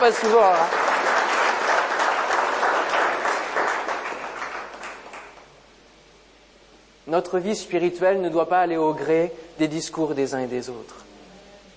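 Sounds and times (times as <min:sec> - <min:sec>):
speech: 0:00.0 - 0:00.8, 0:07.1 - 0:11.0
audience applauding: 0:00.0 - 0:05.5.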